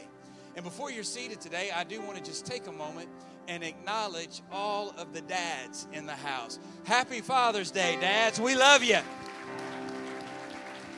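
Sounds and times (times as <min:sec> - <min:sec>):
speech: 0:00.6 - 0:09.6
crowd audience hand clapping: 0:08.6 - 0:10.9.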